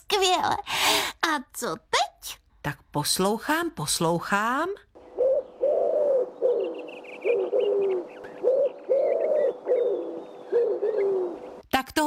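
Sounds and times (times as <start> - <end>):
speech: 0.1 - 4.9
higher bird chirps twittering: 5.0 - 11.6
pigeon cooing: 5.0 - 11.6.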